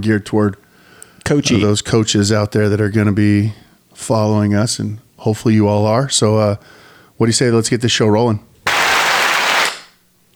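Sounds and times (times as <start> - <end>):
speech: 0.0 - 0.6, 1.3 - 8.5
hand clap high five: 8.7 - 10.0.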